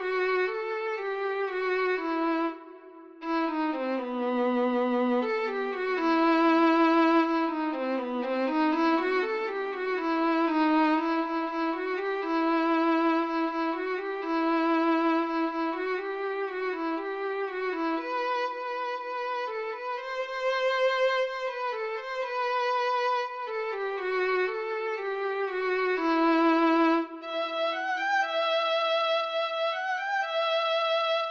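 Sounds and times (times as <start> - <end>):
violin: 0.0 - 31.2.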